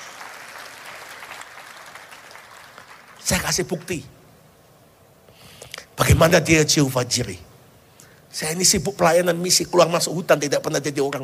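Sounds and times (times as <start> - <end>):
audience applause: 0.0 - 3.2
speech: 3.3 - 4.2, 6.2 - 7.5, 8.4 - 11.2.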